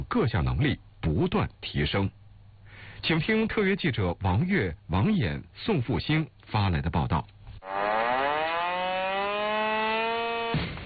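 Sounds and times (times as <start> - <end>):
speech: 0.0 - 2.2, 3.0 - 7.8
urgent alarm siren at military camp: 7.6 - 10.8.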